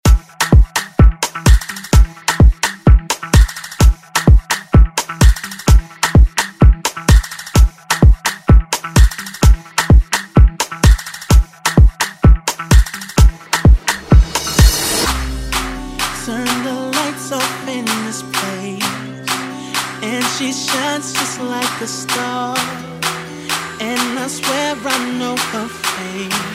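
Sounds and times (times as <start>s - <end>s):
afrobeat music: 0.0s - 26.5s.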